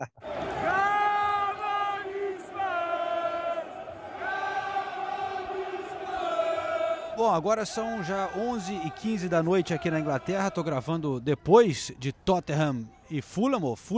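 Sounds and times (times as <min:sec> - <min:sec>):
speech: 0:00.0 - 0:00.2, 0:07.2 - 0:13.9
steady roar of crowd shouting: 0:00.2 - 0:11.0
football fans chanting in unison: 0:00.2 - 0:11.1.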